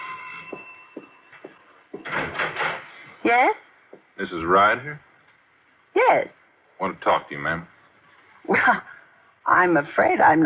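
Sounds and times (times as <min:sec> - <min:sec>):
doorbell buzzing: 0:00.0 - 0:01.4
speech: 0:03.2 - 0:03.6, 0:04.2 - 0:05.1, 0:06.1 - 0:07.7, 0:08.5 - 0:08.9, 0:09.5 - 0:10.4.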